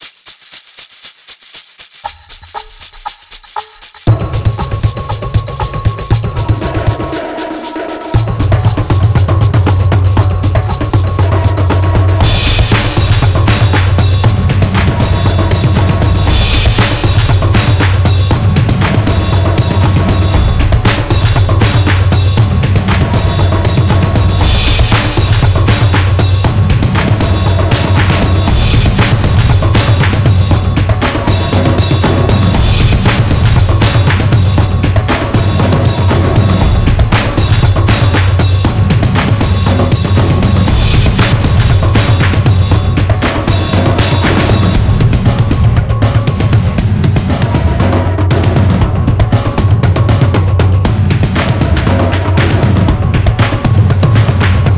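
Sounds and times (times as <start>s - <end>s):
action drum sequence: 0.0s - 54.7s.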